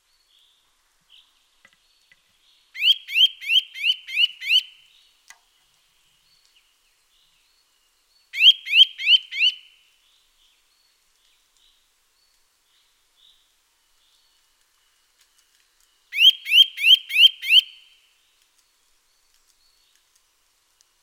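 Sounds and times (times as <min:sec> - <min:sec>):
Eurasian nuthatch Sitta europaea calling with loud rising whistles: 0:02.8 - 0:04.7, 0:08.4 - 0:09.7, 0:16.2 - 0:17.9.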